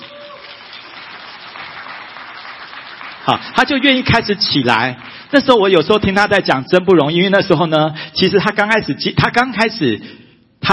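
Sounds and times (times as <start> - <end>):
crowd applauding: 0.0 - 5.4
speech: 3.2 - 10.7.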